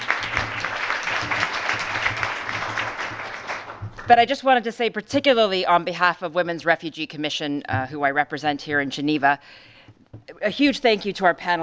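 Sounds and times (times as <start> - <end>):
audience applause: 0.0 - 4.1
speech: 4.1 - 11.6.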